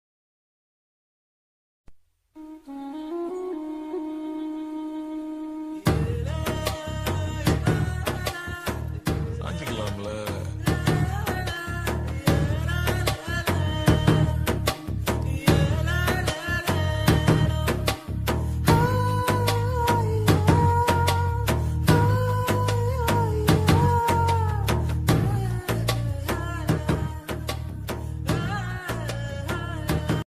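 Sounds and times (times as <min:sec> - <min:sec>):
love background music ringtone: 0:02.4 - 0:30.2.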